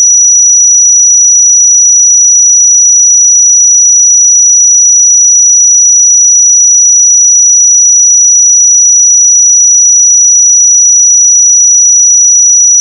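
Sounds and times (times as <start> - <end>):
pure sine tone at 5864 Hz: 0.0 - 12.8.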